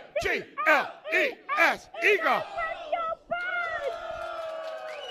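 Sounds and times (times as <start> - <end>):
speech: 0.3 - 2.6
crowd cheering wildly: 2.0 - 5.0.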